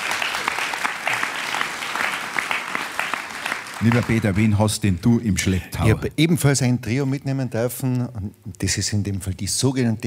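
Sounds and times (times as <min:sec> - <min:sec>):
crowd applauding: 0:00.0 - 0:04.8
speech: 0:03.8 - 0:10.0.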